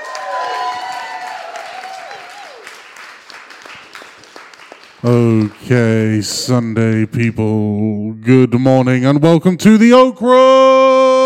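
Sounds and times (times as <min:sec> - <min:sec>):
live audience applause at an audio drama festival: 0:00.0 - 0:05.9
speech: 0:05.0 - 0:10.7.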